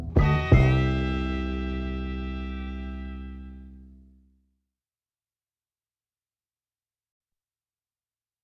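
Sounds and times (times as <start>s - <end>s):
cornstalk fiddle played with a short string bow: 0.2s - 3.6s.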